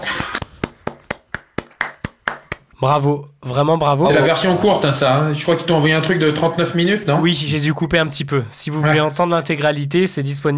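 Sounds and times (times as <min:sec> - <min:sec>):
audience applause: 0:00.0 - 0:02.7
speech: 0:02.8 - 0:10.5.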